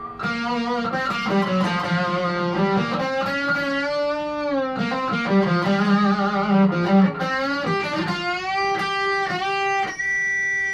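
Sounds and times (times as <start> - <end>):
slightly overdriven electric guitar on its treble pickup playing a melodic phrase: 0.0 - 10.7.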